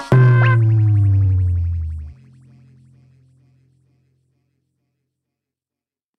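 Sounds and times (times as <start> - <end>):
funk bass: 0.1 - 2.5.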